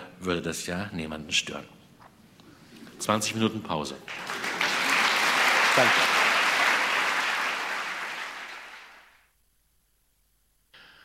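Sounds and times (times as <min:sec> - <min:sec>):
speech: 0:00.2 - 0:01.8, 0:03.0 - 0:04.3, 0:05.8 - 0:06.1
enthusiastic audience applause: 0:04.1 - 0:09.2.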